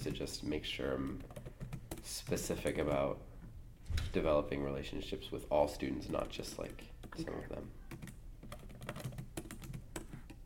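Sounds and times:
speech: 0.1 - 1.4, 2.0 - 3.3, 3.9 - 8.1
computer keyboard typing as notes are written down: 1.0 - 3.1, 5.9 - 7.2, 7.8 - 10.4.

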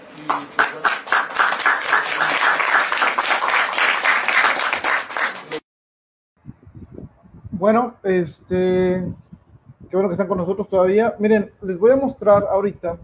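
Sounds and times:
audience applause: 0.0 - 5.6
speech: 0.2 - 1.0, 7.6 - 9.2, 9.9 - 13.0.

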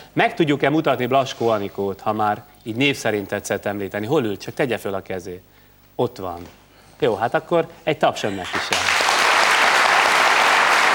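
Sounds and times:
speech: 0.2 - 9.0
crowd applauding: 8.4 - 10.9.

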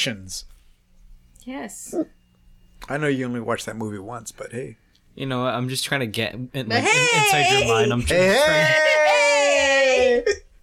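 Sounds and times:
speech: 0.0 - 0.5, 1.4 - 2.2, 2.8 - 9.0
high strained vocal wail: 6.7 - 10.4.

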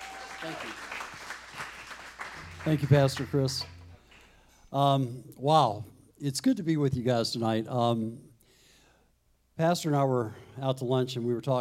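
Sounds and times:
audience applause: 0.0 - 4.3
speech: 0.4 - 1.1, 2.6 - 3.8, 4.7 - 8.3, 9.6 - 11.6.

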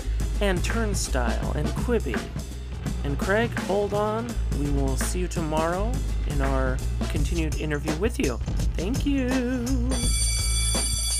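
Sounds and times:
speech: 0.4 - 10.2
bell ringing: 9.9 - 11.1.

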